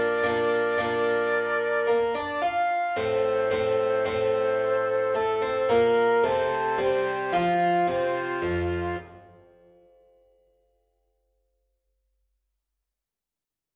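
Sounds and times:
minuet: 0.0 - 9.7.

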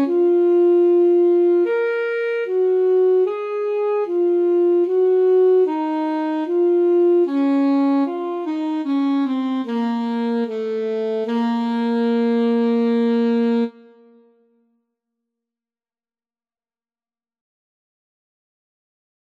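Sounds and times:
slow etude: 0.0 - 14.3.

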